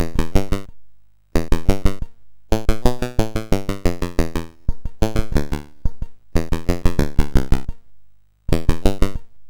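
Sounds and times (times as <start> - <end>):
MOS6581R4 chiptune game music: 1.4 - 5.8, 6.4 - 7.7, 8.5 - 9.2.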